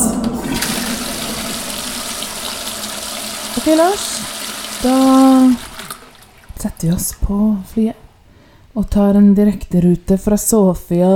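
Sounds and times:
toilet flushing: 0.0s - 7.7s
speech: 3.6s - 5.7s, 6.6s - 8.0s, 8.8s - 11.1s.

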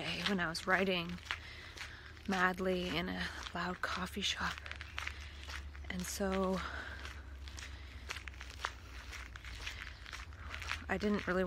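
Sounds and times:
faint footsteps walking through a park at night: 0.0s - 11.4s
low steady rumble: 0.0s - 11.4s
speech: 0.3s - 1.4s, 2.3s - 4.7s, 5.9s - 6.8s, 10.9s - 11.4s.

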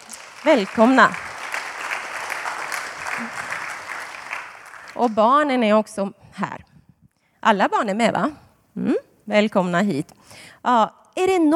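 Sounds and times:
audience applause: 0.0s - 5.2s
speech: 0.4s - 1.3s, 5.0s - 6.7s, 7.4s - 11.5s.

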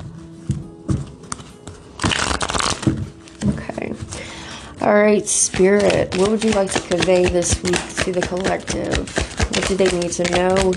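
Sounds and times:
cards being shuffled: 1.2s - 4.2s, 5.1s - 10.7s
speech: 4.9s - 10.7s.

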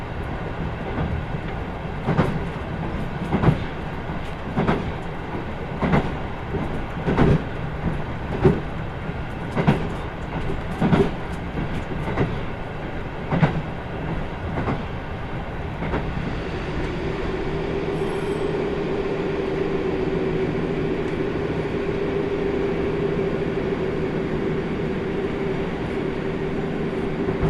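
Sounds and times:
Kyushu Odan limited express rail-joint clacks on the Hohi Line: 0.2s - 15.0s, 15.7s - 17.0s, 27.2s - 27.4s
steady droning hum with a mid-pitched tone: 16.4s - 27.4s.

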